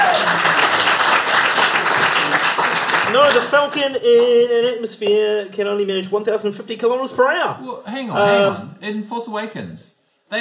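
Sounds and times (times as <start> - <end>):
audience applause: 0.0 - 4.4
speech: 3.1 - 10.3.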